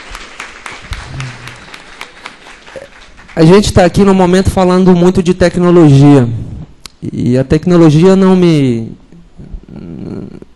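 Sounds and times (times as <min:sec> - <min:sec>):
round of applause: 0:00.0 - 0:04.1
speech: 0:03.4 - 0:06.4, 0:07.0 - 0:09.0.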